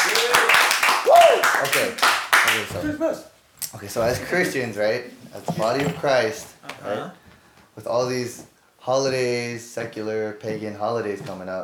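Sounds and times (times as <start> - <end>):
crowd clapping: 0.0 - 3.0
speech: 1.8 - 7.2, 7.8 - 11.6.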